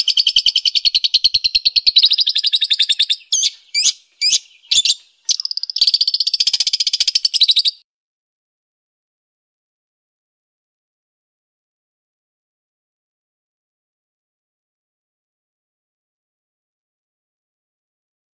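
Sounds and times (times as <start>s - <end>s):
long-tailed shrike chattering song: 0.0s - 7.8s.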